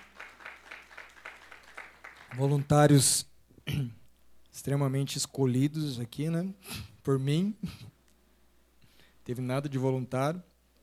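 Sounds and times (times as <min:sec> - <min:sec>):
audience applauding volunteers: 0:00.0 - 0:02.9
speech: 0:02.3 - 0:04.0, 0:04.6 - 0:07.9, 0:09.3 - 0:10.5.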